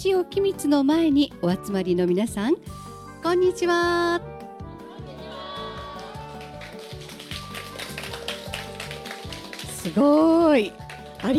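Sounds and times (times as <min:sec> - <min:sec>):
speech: 0:00.0 - 0:04.3, 0:09.8 - 0:11.3
audience applause: 0:05.0 - 0:11.3.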